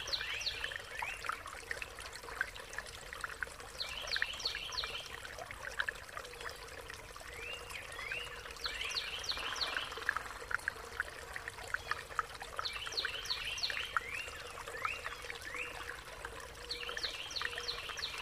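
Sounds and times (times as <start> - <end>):
birds singing in nature: 0.0 - 1.3, 7.3 - 10.4, 11.7 - 16.0, 16.6 - 18.2
stream flowing in nature: 0.0 - 18.2.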